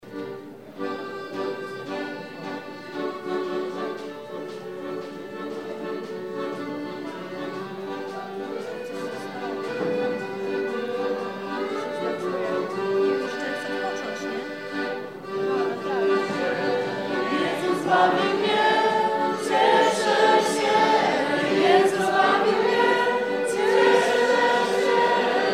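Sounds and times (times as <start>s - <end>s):
accordion song: 0.0s - 25.5s.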